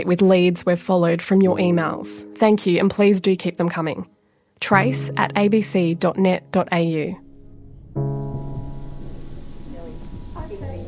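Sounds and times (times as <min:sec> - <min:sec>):
speech: 0:00.0 - 0:07.2
rain falling at night: 0:08.1 - 0:10.8.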